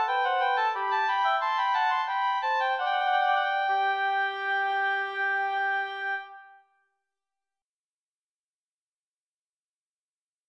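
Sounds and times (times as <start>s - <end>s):
two oboes playing a rondeau in G major: 0.0s - 6.4s.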